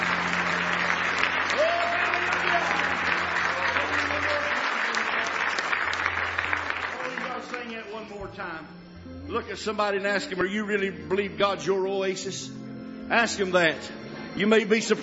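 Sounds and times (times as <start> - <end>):
faint voices and cheers: 0.0 - 5.4
audience clapping in praise: 0.0 - 8.2
speech: 9.4 - 15.0.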